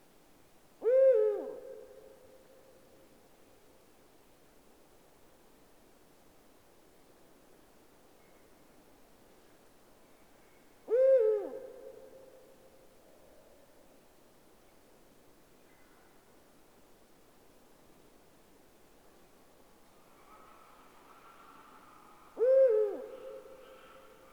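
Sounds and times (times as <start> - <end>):
Eurasian eagle-owl deep hoots: 0.8 - 1.9, 10.9 - 12.1, 20.2 - 24.3.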